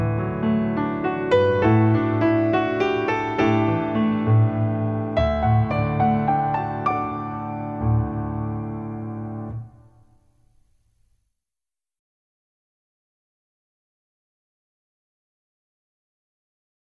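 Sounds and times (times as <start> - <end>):
instrumental music: 0.0 - 11.3.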